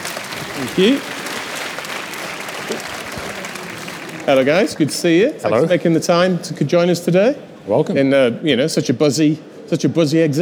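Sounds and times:
audience applause at an exhibition-hall tech event: 0.0s - 5.0s
speech: 0.6s - 1.2s, 4.3s - 10.3s.

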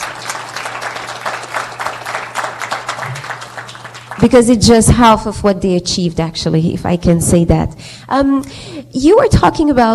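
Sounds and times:
audience applause: 0.0s - 4.4s
speech: 4.2s - 9.9s.

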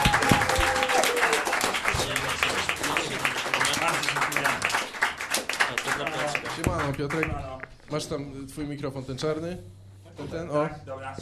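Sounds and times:
audience applause: 0.0s - 7.3s
speech: 7.0s - 11.2s.

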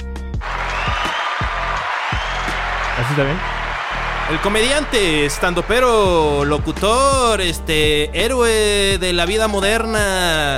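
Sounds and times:
applause sound effect: 0.4s - 7.6s
speech: 3.0s - 3.6s, 4.3s - 10.5s.

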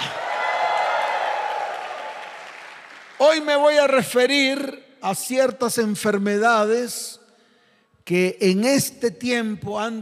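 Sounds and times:
audience applause: 0.0s - 3.2s
speech: 3.2s - 7.2s, 8.0s - 10.0s.

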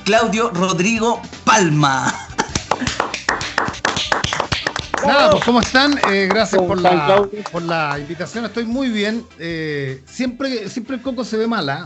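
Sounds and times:
speech: 0.0s - 2.2s, 5.0s - 11.8s
group applause: 2.4s - 8.1s.

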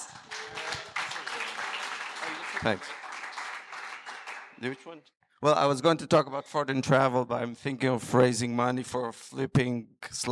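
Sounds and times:
audience applause: 0.0s - 4.9s
speech: 2.6s - 3.0s, 4.6s - 10.2s.

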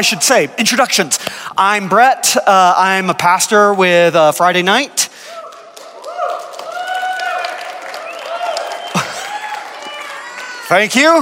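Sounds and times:
speech: 0.0s - 5.2s, 10.7s - 11.2s
audience applause: 5.4s - 11.2s.

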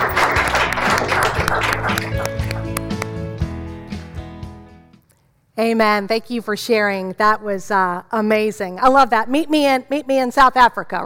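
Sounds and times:
audience clapping: 0.0s - 3.4s
speech: 5.6s - 11.0s.

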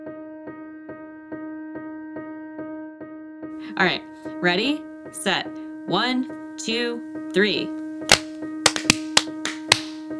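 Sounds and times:
speech: 3.6s - 7.8s
group clapping hands together: 8.1s - 10.1s.

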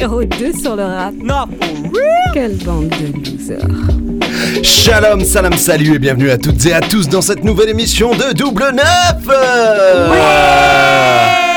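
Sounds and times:
speech: 0.0s - 11.5s
live evening show audience cheering wildly: 9.8s - 11.5s.

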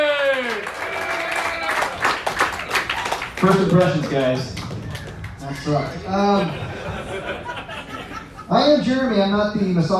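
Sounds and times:
audience clapping: 0.0s - 6.0s
speech: 3.4s - 4.6s, 5.5s - 6.7s, 8.5s - 9.9s
laughter: 4.9s - 8.6s.

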